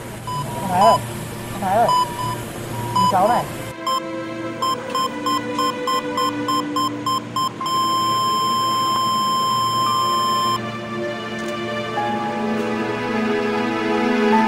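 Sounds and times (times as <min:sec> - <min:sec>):
patient monitor flatline tone: 0:00.0 - 0:10.6
low hum: 0:00.0 - 0:14.3
patient monitor beeps: 0:00.3 - 0:01.0, 0:01.7 - 0:04.0, 0:04.6 - 0:10.6
speech: 0:00.7 - 0:01.1, 0:03.1 - 0:03.6.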